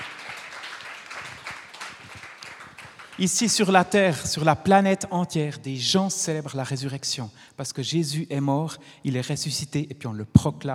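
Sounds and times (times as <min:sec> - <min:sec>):
audience applauding: 0:00.0 - 0:03.6
speech: 0:03.2 - 0:10.7.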